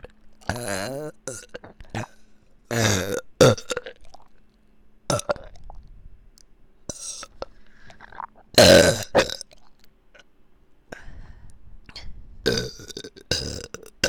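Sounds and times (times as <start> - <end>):
burping in both ears: 0.4 - 4.2, 5.1 - 5.6, 8.0 - 9.6, 12.5 - 14.0.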